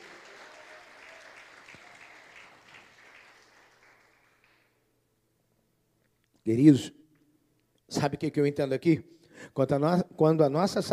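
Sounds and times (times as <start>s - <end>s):
audience applauding: 0.0s - 4.8s
speech: 6.4s - 7.0s, 7.9s - 10.9s.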